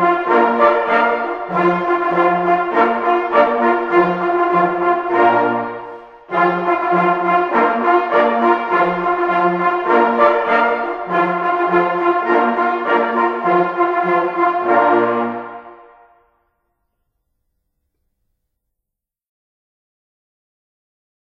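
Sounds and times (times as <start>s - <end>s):
hunting horn playing a march: 0.0s - 16.3s.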